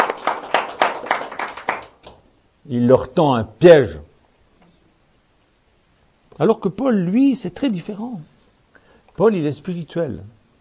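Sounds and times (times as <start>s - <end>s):
audience applauding: 0.0s - 2.2s
speech: 2.7s - 4.1s, 6.4s - 8.3s, 9.2s - 10.4s.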